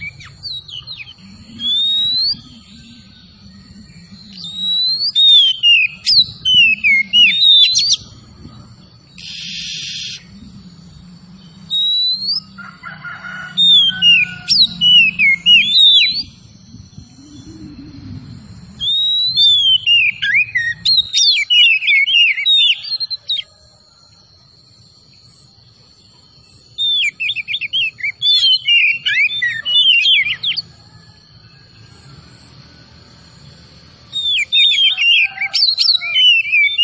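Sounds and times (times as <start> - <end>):
low rumbling: 0.0 - 12.6, 13.6 - 21.2
oriental magpie-robin whistled song: 0.0 - 12.6, 13.5 - 23.6, 25.1 - 36.8.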